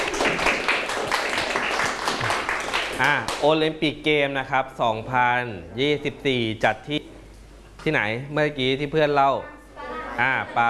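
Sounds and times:
group of people clapping for a classmate in a room: 0.0s - 3.5s
speech: 3.0s - 7.0s, 7.8s - 9.6s, 10.2s - 10.6s.

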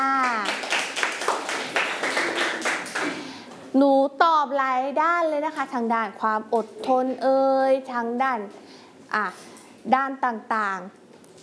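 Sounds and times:
children clapping for a classmate: 0.2s - 3.2s
speech: 3.8s - 11.0s.

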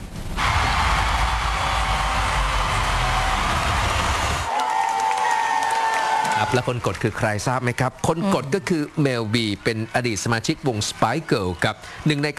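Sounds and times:
applause echoing through the hall: 0.4s - 12.3s
crowd noise: 0.4s - 12.3s
speech: 6.5s - 12.3s.

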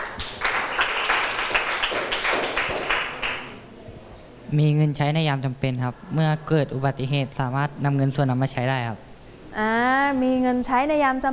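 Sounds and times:
classroom students clapping: 0.0s - 3.6s
speech: 4.5s - 11.3s.

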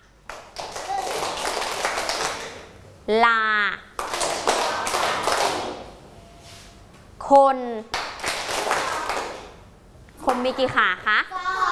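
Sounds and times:
hand clapping: 0.2s - 2.7s, 4.0s - 5.9s, 7.9s - 9.6s, 10.2s - 10.8s
speech: 3.1s - 3.8s, 7.3s - 8.0s, 10.3s - 11.4s.

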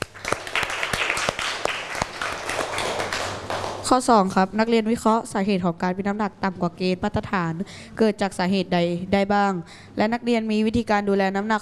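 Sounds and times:
classroom applause: 0.0s - 3.9s
speech: 3.9s - 11.6s.

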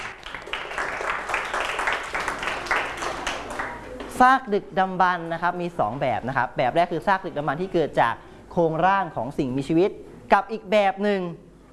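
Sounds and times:
classroom applause: 0.0s - 4.2s
speech: 4.2s - 11.4s.

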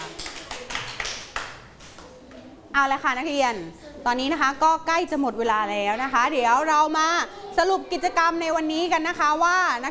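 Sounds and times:
students in a class clapping for themselves and classmates: 0.0s - 2.1s
speech: 2.8s - 9.8s.

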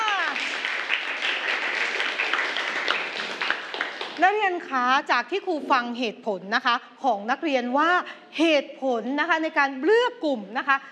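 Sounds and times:
students applauding: 0.0s - 4.4s
speech: 4.2s - 10.8s.

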